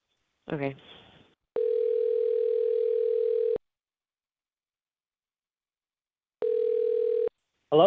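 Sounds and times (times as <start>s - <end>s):
telephone ringback tone while phoning someone: 1.6s - 3.6s, 6.4s - 7.3s.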